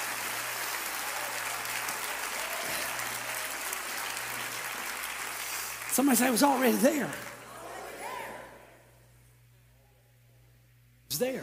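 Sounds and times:
audience clapping hands: 0.0s - 8.2s
speech: 6.0s - 7.3s, 11.2s - 11.4s.

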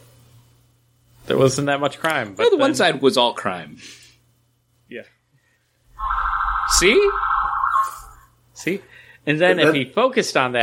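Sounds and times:
speech: 1.3s - 4.0s, 4.9s - 5.2s, 6.0s - 7.3s, 8.6s - 10.6s
ambulance siren: 6.0s - 8.2s.

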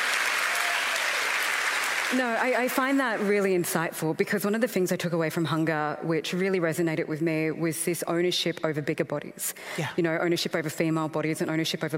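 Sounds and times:
group of people clapping: 0.0s - 3.3s
speech: 2.1s - 11.9s.

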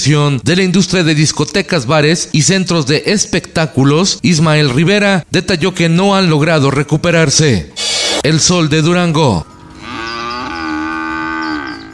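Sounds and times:
speech: 0.0s - 9.5s
cow mooing: 9.4s - 11.9s.

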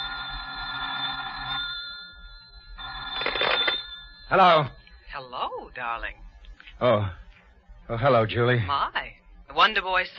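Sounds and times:
old-style telephone bell ringing: 0.0s - 4.9s
speech: 4.3s - 6.2s, 6.8s - 7.2s, 7.9s - 10.1s.

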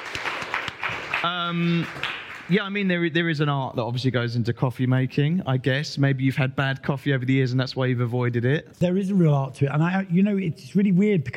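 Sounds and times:
round of applause: 0.0s - 2.7s
speech: 1.2s - 11.3s.

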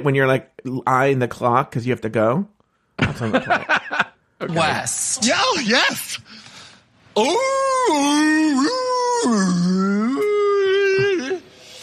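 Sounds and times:
speech: 0.0s - 6.5s, 7.2s - 10.4s
laughter: 3.0s - 4.2s
voice imitating whale song: 7.2s - 11.5s.

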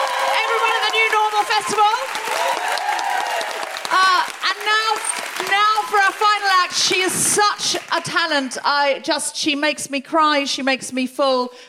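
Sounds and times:
crowd applauding: 0.0s - 8.1s
speech: 4.9s - 11.6s.

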